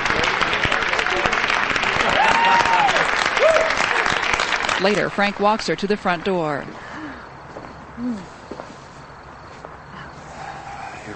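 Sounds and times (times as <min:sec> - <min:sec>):
audience applauding dancers: 0:00.0 - 0:05.4
speech: 0:04.8 - 0:06.9, 0:08.0 - 0:08.3.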